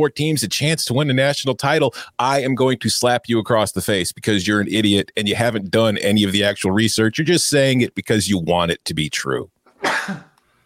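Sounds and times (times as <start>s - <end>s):
speech: 0.0s - 10.3s
person sneezing: 9.8s - 10.4s.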